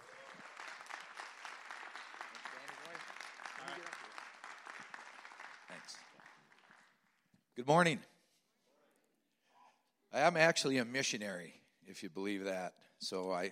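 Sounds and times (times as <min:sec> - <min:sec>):
audience applause: 0:00.0 - 0:07.2
speech: 0:05.8 - 0:06.1, 0:07.6 - 0:08.1, 0:10.1 - 0:13.5.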